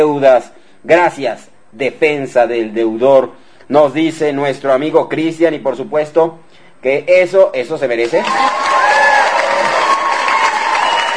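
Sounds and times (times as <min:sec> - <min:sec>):
speech: 0:00.0 - 0:08.9
applause: 0:08.0 - 0:11.1
crowd cheering and whooping: 0:08.2 - 0:11.1.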